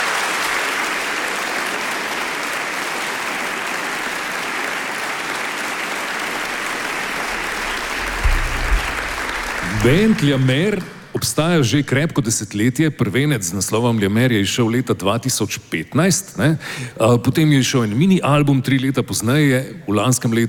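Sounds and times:
audience applause: 0.0s - 11.8s
low thump: 6.4s - 11.2s
speech: 9.8s - 20.4s.

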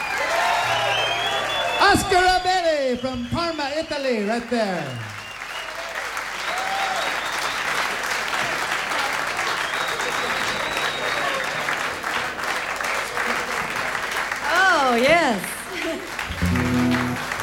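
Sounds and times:
game show audience applause: 0.0s - 3.5s, 4.6s - 17.4s
speech: 1.9s - 5.1s.

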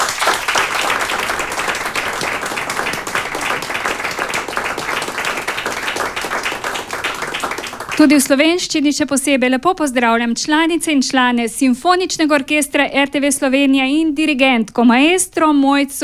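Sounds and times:
audience applause: 0.0s - 8.3s
speech: 8.0s - 16.0s.

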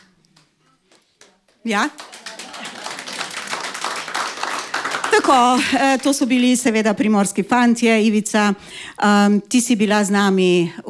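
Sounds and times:
studio audience clapping: 0.0s - 5.8s
speech: 1.6s - 2.1s, 5.2s - 10.8s.

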